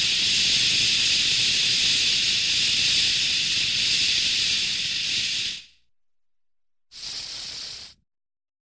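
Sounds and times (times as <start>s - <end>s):
aerosol spray: 0.0s - 5.7s, 6.9s - 8.0s.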